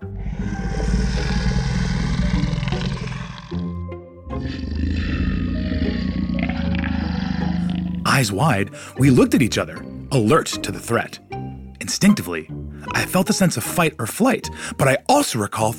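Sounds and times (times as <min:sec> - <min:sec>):
fierce growl of a monster: 0:00.0 - 0:08.3
speech: 0:08.2 - 0:11.2, 0:11.8 - 0:15.7.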